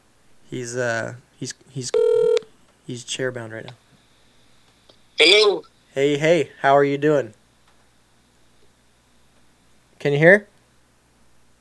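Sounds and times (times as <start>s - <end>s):
speech: 0.5s - 2.2s, 2.9s - 3.8s, 5.2s - 7.4s, 10.0s - 10.5s
electronic telephone tone: 2.0s - 2.5s.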